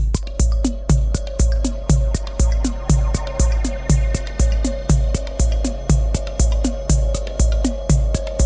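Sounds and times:
lullaby music: 0:00.2 - 0:08.4.

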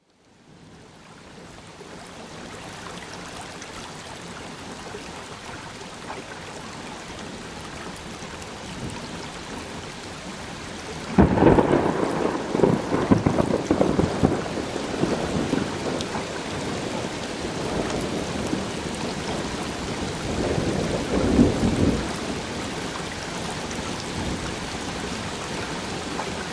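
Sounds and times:
thunderstorm: 0:11.0 - 0:26.5.

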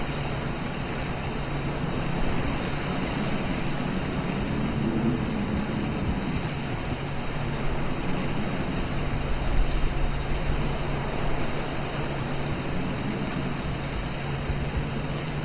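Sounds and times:
hurricane winds: 0:00.0 - 0:15.4.

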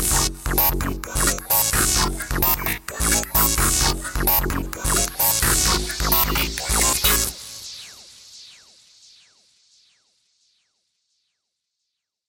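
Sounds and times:
electro music: 0:00.0 - 0:08.7.

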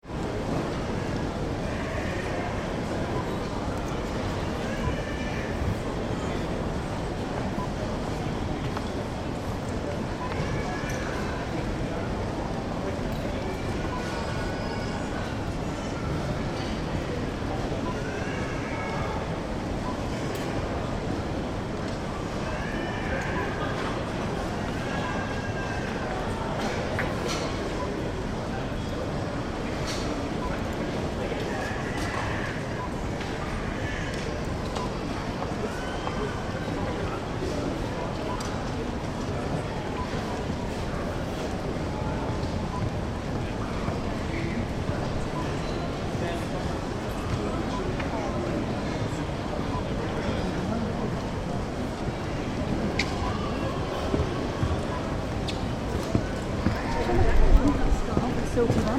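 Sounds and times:
Kingston shopping centre ambience: 0:00.0 - 0:58.9.

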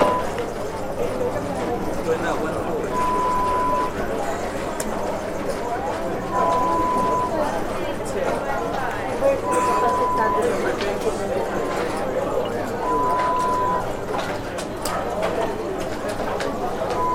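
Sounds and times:
casino ambience: 0:00.0 - 0:17.1.

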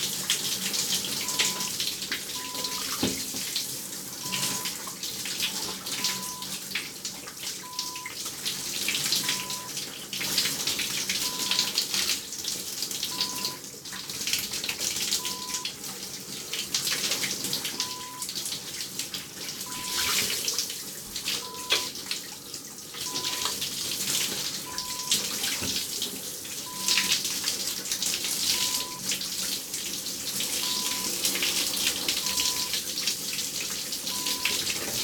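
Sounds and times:
shower running: 0:00.0 - 0:35.0.

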